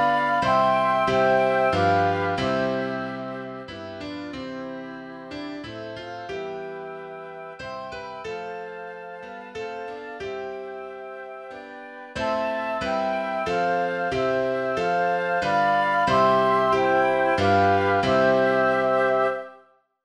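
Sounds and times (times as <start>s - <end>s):
piano: 0.0s - 19.6s
flute: 0.0s - 19.7s.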